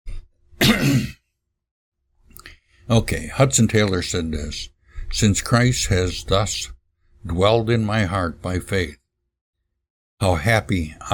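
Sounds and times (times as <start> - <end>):
throat clearing: 0.6 - 1.2
speech: 2.9 - 9.0, 10.2 - 11.1.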